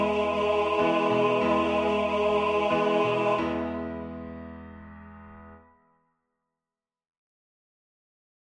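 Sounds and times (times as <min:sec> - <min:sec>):
tenor singing scripture song: 0:00.0 - 0:03.9.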